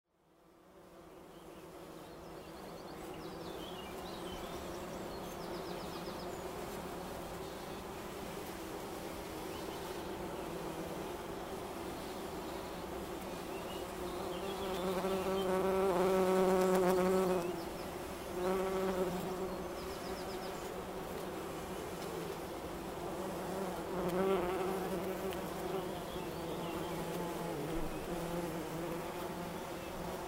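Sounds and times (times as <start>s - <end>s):
bumblebee buzzing: 0.6s - 30.2s.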